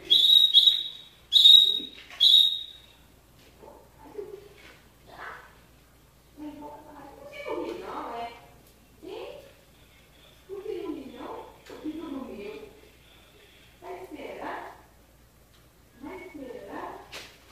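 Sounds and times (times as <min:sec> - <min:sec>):
canary song with fast rolling trill: 0:00.0 - 0:03.0.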